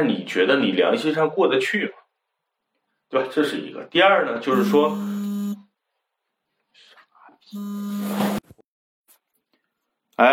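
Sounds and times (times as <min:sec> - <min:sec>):
speech: 0:00.0 - 0:02.0, 0:03.1 - 0:05.2, 0:07.5 - 0:08.6, 0:10.2 - 0:10.3
phone ringing for an incoming call: 0:04.5 - 0:05.6, 0:07.6 - 0:08.4.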